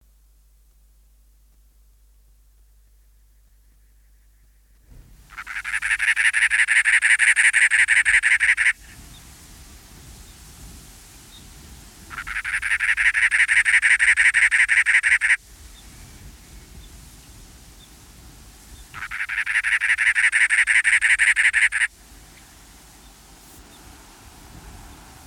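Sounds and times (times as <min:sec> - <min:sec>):
cactus wren song: 0:05.3 - 0:09.2, 0:12.1 - 0:15.9, 0:18.7 - 0:23.9.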